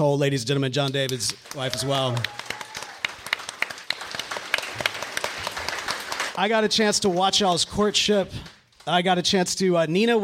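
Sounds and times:
speech: 0.0 - 2.4, 6.4 - 10.2
audience round of applause: 1.1 - 7.4.

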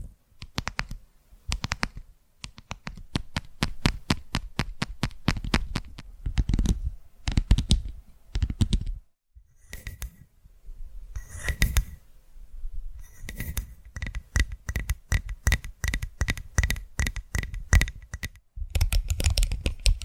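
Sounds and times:
fingertip tapping: 0.4 - 8.9, 13.0 - 20.0.

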